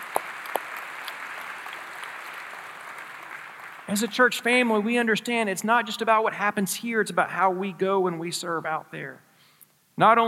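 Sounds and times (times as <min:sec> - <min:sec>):
audience clapping: 0:00.0 - 0:04.8
speech: 0:03.9 - 0:09.3, 0:10.0 - 0:10.2.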